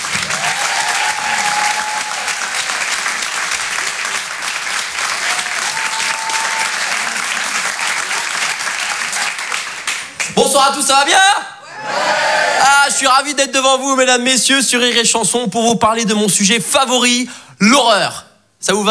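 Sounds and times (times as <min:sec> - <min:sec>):
crowd applause at the Rire et Chanson Comedy Club: 0:00.0 - 0:10.4
speech: 0:10.6 - 0:11.4, 0:12.9 - 0:18.9.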